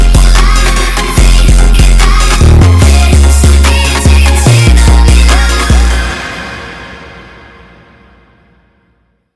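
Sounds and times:
sped up funk music: 0:00.0 - 0:06.1.

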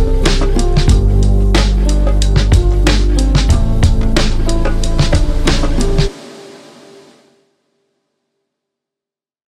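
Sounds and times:
super slowed funk music: 0:00.0 - 0:06.8.

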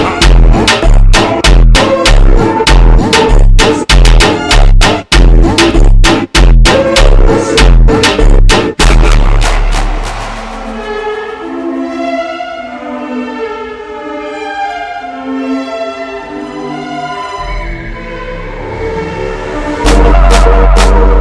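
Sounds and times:
super slowed funk music: 0:00.0 - 0:11.7, 0:17.4 - 0:21.1.

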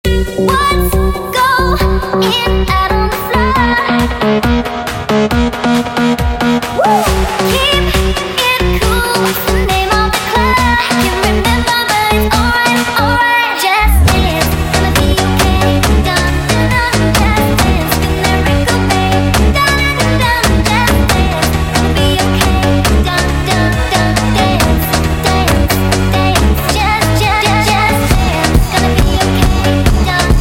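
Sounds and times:
sped up funk music: 0:00.1 - 0:30.3.

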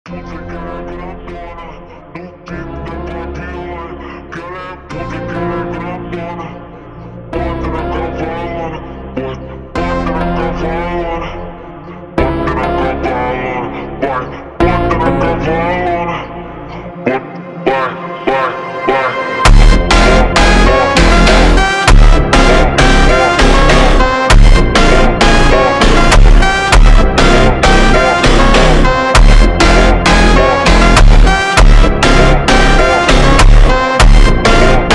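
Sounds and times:
super slowed phonk funk music: 0:00.1 - 0:34.9.

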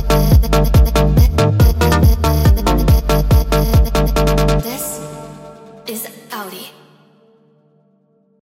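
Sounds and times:
sped up funk music: 0:00.0 - 0:04.6.

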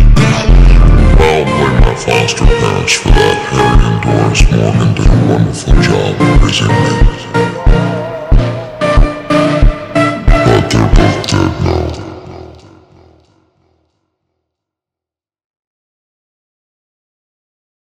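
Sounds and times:
slowed funk music with reverb: 0:00.0 - 0:13.0.

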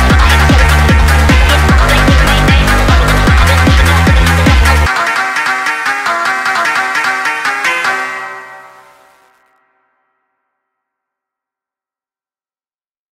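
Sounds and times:
sped-up phonk music: 0:00.0 - 0:09.4.

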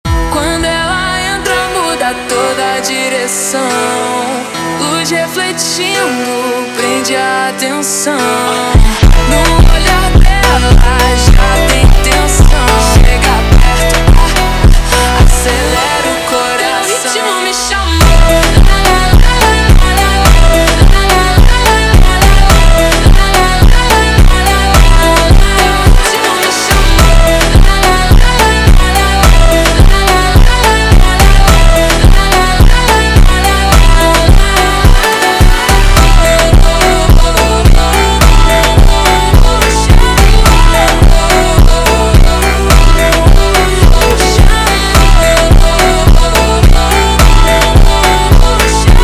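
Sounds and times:
slowed funk music: 0:00.1 - 0:49.0.

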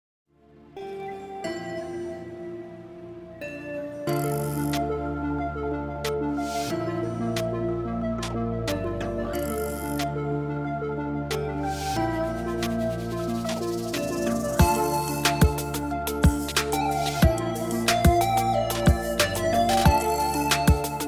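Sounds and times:
relaxing dreamy atmospheric electronic nightcore music: 0:00.4 - 0:21.0.

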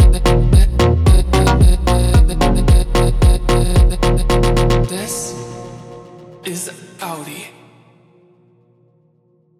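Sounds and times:
slowed funk music: 0:00.0 - 0:06.2.

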